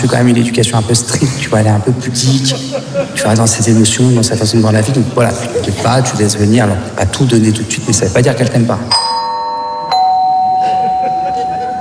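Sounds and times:
speech: 0.0 - 9.0
laughter: 2.2 - 3.9, 5.0 - 6.4, 10.6 - 11.7
doorbell chiming: 8.9 - 11.7.

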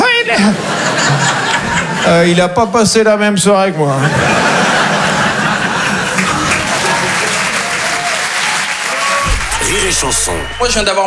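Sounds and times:
laughter: 0.0 - 2.8, 3.6 - 11.0
speech: 0.3 - 0.8, 2.0 - 4.4, 9.9 - 11.0
audience applause: 4.1 - 10.9.

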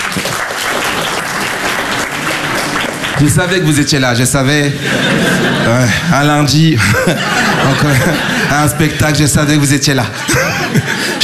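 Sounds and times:
crowd clapping: 0.0 - 5.6
laughter: 0.1 - 11.2
speech: 3.2 - 11.2.

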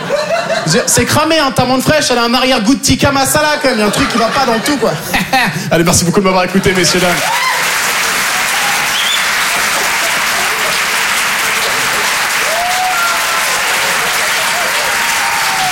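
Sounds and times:
laughter: 0.0 - 1.1, 3.5 - 15.7
speech: 0.7 - 7.7
audience applause for comedian Basile at a comedy show: 6.5 - 15.7.

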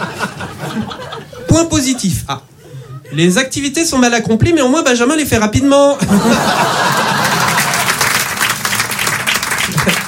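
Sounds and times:
audience laughter: 0.0 - 1.5, 6.0 - 8.2
speech: 1.5 - 2.5, 3.1 - 7.1
audience applause: 6.6 - 10.0.

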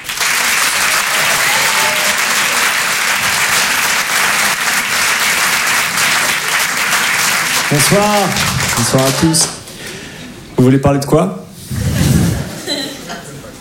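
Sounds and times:
comedy club audience applauding a comedian: 0.0 - 9.7
speech: 7.7 - 9.6, 10.6 - 11.9
laughter: 12.4 - 13.6.

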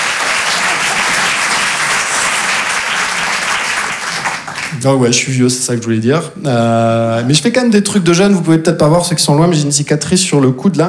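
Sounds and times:
audience applause: 0.0 - 4.9
speech: 4.8 - 10.8.

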